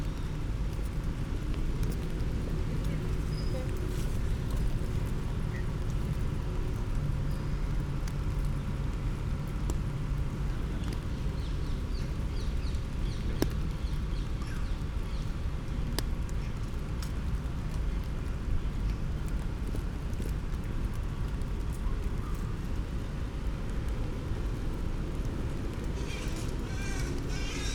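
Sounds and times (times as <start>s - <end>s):
rain: 0.0s - 27.7s
people passing: 25.2s - 27.7s
distant birds: 25.9s - 27.7s.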